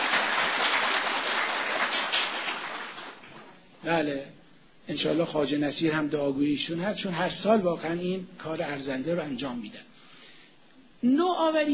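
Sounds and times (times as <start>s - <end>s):
crowd applauding: 0.0s - 3.6s
speech: 3.8s - 9.9s, 11.0s - 11.7s.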